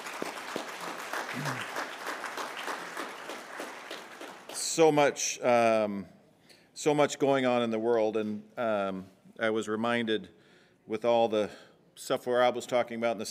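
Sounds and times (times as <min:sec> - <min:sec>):
audience applause: 0:00.0 - 0:04.8
speech: 0:01.4 - 0:01.8, 0:04.8 - 0:06.2, 0:06.8 - 0:13.2.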